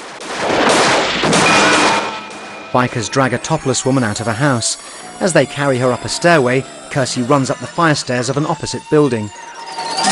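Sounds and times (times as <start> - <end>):
gunfire in a film shootout between police officers and bikers: 0.2 - 2.7
shotgun blast in a film shootout: 0.3 - 2.7
speech: 2.7 - 10.0.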